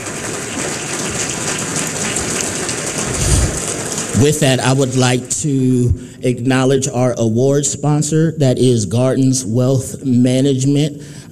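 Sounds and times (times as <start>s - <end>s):
audience applauding: 0.0s - 5.7s
speech: 4.2s - 11.2s.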